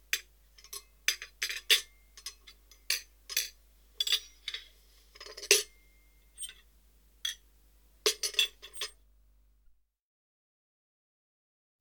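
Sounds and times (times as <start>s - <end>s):
crockery: 0.6s - 6.6s, 8.1s - 9.0s.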